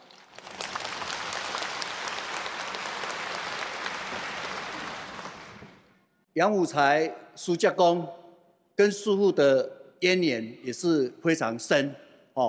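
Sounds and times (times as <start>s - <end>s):
crowd applause: 0.0s - 5.9s
speech: 6.4s - 8.2s, 8.8s - 12.4s.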